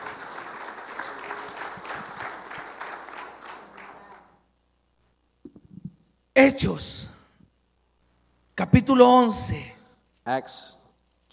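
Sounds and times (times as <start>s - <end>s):
applause: 0.0s - 4.4s
speech: 6.4s - 7.1s, 8.6s - 9.7s, 10.3s - 11.3s.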